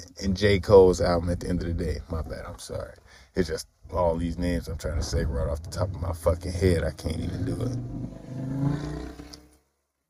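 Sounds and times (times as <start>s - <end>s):
speech: 0.2s - 9.1s
loud motorcycle outside: 7.2s - 9.6s.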